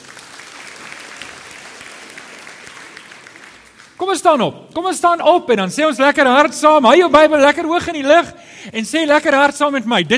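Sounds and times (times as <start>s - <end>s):
audience applause for the orchestra: 0.0s - 4.0s
speech: 4.0s - 10.1s.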